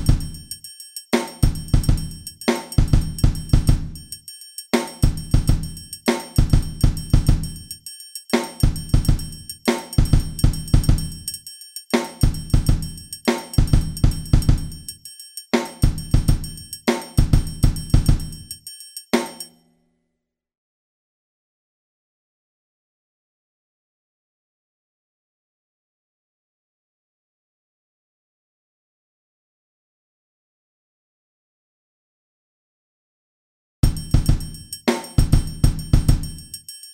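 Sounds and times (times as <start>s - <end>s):
percussion: 0.0s - 19.7s, 33.8s - 36.9s.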